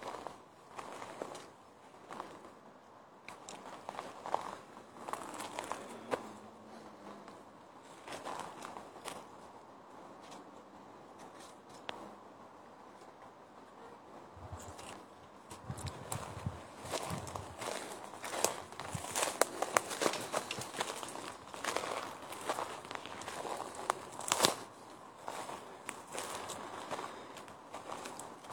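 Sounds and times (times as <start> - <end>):
outdoor hiss: 0.0 - 28.5
footsteps crunching through a forest in the Govind wildlife sanctuary: 3.4 - 6.3, 7.3 - 9.3, 15.6 - 28.5.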